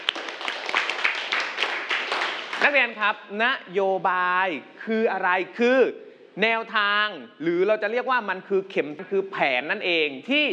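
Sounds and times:
students clapping lightly for a classmate in a classroom: 0.0s - 2.7s
speech: 2.6s - 10.5s.

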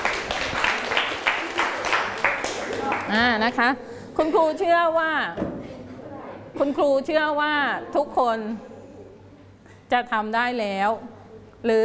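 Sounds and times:
students clapping in a classroom: 0.0s - 3.4s
speech: 3.1s - 5.5s, 6.6s - 8.7s, 9.9s - 11.8s.

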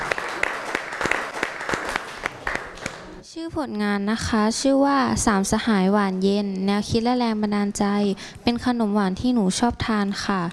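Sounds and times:
audience applause: 0.0s - 3.1s
speech: 3.4s - 10.5s.

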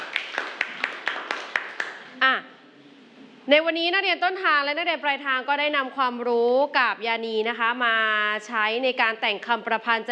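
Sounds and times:
class clapping hands in unison: 0.0s - 2.2s
speech: 3.5s - 10.0s.

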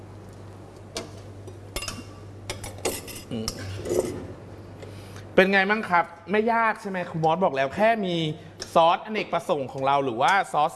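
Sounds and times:
utensils clinking and scraping in a pan while tossing spring onions: 2.6s - 4.3s
speech: 3.3s - 4.2s, 5.4s - 10.7s.

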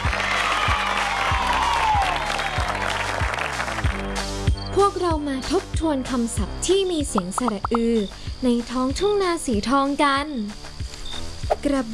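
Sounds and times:
children clapping hands as applause: 0.0s - 4.2s
speech: 5.2s - 10.6s, 11.5s - 11.9s.

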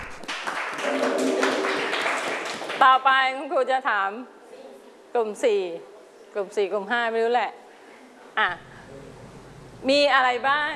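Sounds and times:
classroom applause for a group of students: 0.0s - 2.8s
speech: 2.8s - 4.4s, 5.2s - 7.6s, 8.4s - 9.0s, 9.8s - 10.7s.

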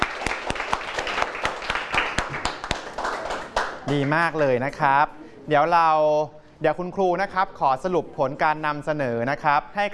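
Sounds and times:
classroom applause: 0.0s - 4.2s
speech: 3.9s - 9.9s.

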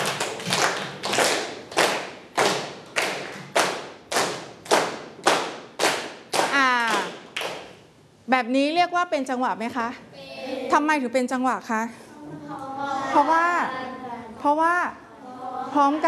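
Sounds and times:
children clapping hands: 0.0s - 7.7s
speech: 8.4s - 10.1s, 10.7s - 13.5s, 14.4s - 15.0s, 15.7s - 16.0s.

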